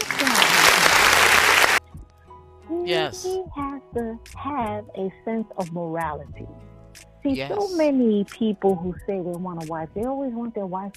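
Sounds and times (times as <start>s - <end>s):
crowd applause: 0.0s - 1.8s
speech: 2.9s - 10.9s.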